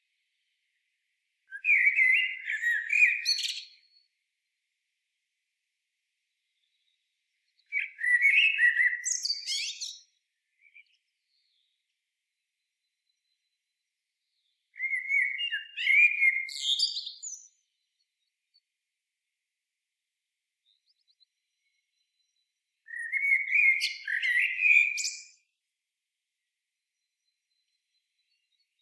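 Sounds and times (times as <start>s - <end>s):
common blackbird singing: 1.5s - 4.1s, 6.5s - 11.8s, 14.2s - 17.8s, 20.9s - 25.5s.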